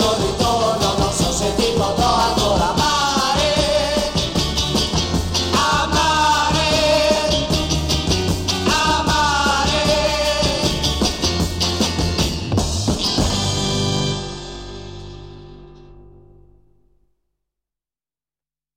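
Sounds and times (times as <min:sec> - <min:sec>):
Italian beat music: 0:00.0 - 0:14.1.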